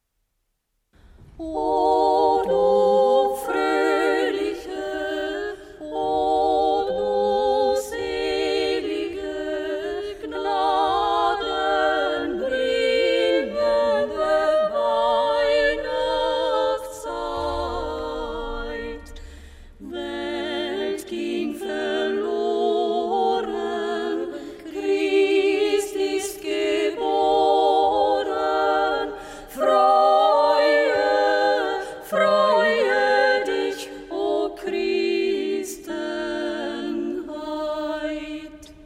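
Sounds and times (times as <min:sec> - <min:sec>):
three-part singing of a Christmas carol: 0:01.0 - 0:38.8.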